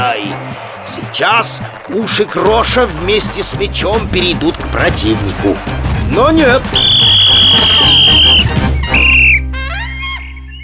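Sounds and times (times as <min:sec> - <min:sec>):
speech: 0:00.6 - 0:08.6
referee's whistle: 0:06.8 - 0:10.6
warbling chirpy cartoon sounds: 0:06.8 - 0:10.6.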